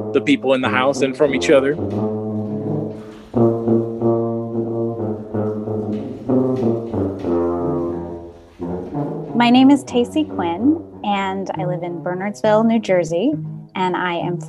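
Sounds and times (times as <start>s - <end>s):
speech: 0.0s - 2.1s, 9.4s - 14.4s
tuba playing Christmas carols: 0.0s - 13.0s.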